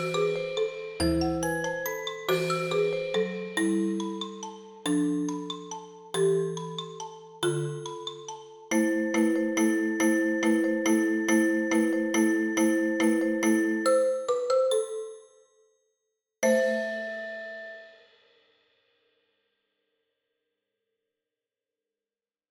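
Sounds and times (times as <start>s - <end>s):
percussion: 0.0s - 15.1s, 16.4s - 19.0s.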